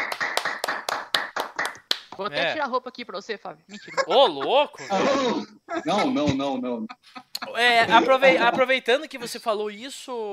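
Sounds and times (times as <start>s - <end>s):
small group clapping hands: 0.0s - 2.4s
speech: 2.2s - 10.3s
laughter: 3.7s - 9.4s.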